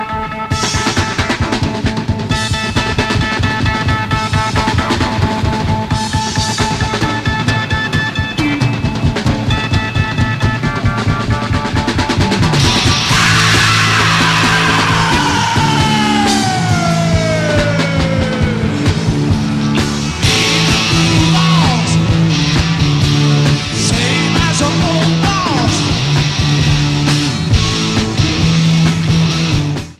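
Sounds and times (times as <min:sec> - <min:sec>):
drum solo: 0:00.0 - 0:29.9.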